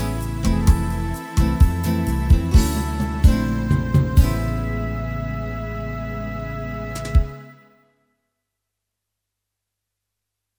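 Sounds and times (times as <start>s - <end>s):
organ: 0.0s - 7.7s.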